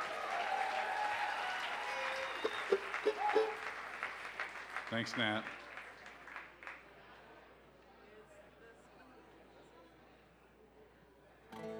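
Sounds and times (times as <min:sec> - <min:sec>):
audience applause welcoming performers on stage: 0:00.0 - 0:06.8
speech: 0:02.4 - 0:03.6, 0:04.9 - 0:05.6.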